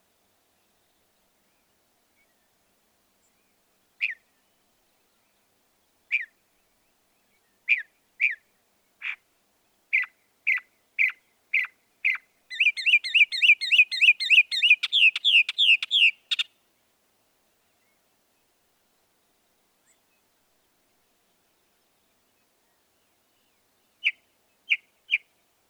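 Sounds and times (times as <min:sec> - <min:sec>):
northern mockingbird song: 0:09.9 - 0:16.5.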